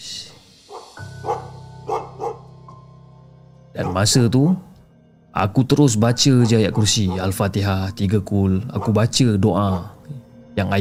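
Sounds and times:
dogs barking and answering each other: 0.7 - 2.6, 3.7 - 4.4, 6.2 - 7.5, 8.6 - 10.1
speech: 3.8 - 4.7, 5.4 - 10.0, 10.6 - 10.7.

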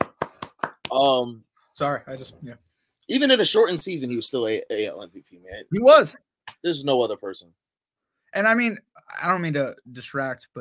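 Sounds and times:
hands clapping: 0.0 - 1.2
speech: 0.9 - 7.6, 8.3 - 10.5.

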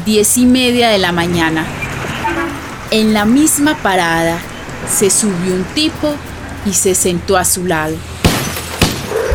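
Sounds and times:
speech: 0.0 - 8.1
window glass shattering: 8.2 - 9.1
sharp loud cracks: 8.2 - 9.2.

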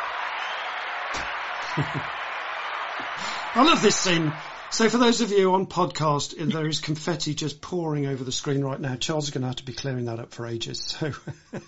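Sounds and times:
round of applause: 0.0 - 6.5
speech: 1.1 - 2.2, 3.2 - 11.6
laughter: 1.2 - 2.2, 11.0 - 11.6.

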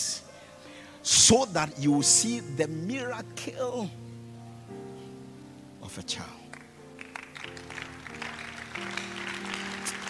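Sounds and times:
speech: 1.3 - 4.1, 6.0 - 6.4
audience hand clapping: 6.5 - 10.0.

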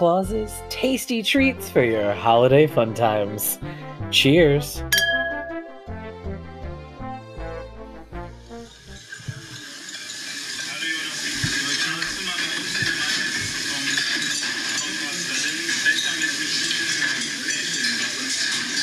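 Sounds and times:
speech: 0.0 - 5.0
sherry being poured: 8.4 - 18.8.

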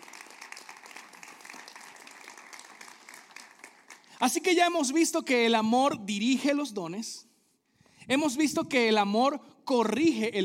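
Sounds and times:
audience applause: 0.0 - 4.2
speech: 4.2 - 7.3, 8.1 - 10.4.

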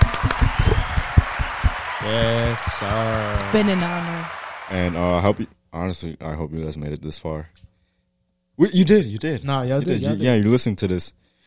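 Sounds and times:
small group clapping for a guest: 0.0 - 5.0
speech: 2.1 - 7.7, 8.6 - 11.4.

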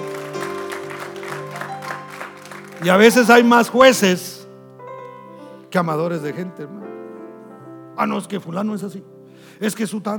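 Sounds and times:
audience applause: 0.0 - 4.0
speech: 2.8 - 4.3, 5.7 - 6.9, 8.0 - 10.1.

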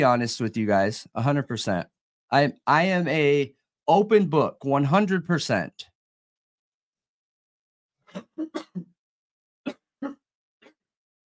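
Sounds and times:
speech: 0.0 - 5.9, 8.2 - 8.9
sick cough: 8.2 - 8.9.

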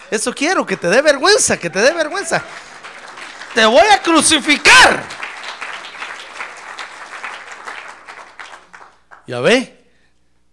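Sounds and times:
audience applause: 0.0 - 9.3
speech: 0.1 - 2.7, 3.6 - 5.2, 9.3 - 9.8.

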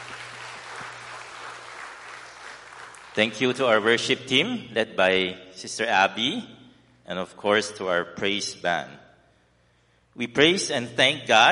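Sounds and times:
round of applause: 0.0 - 3.7
speech: 3.2 - 9.0, 10.2 - 11.4.

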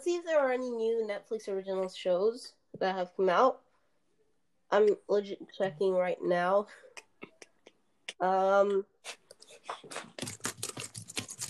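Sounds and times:
speech: 0.0 - 3.6, 4.7 - 7.0, 8.2 - 10.3
loud typing on a keyboard: 9.4 - 11.4.

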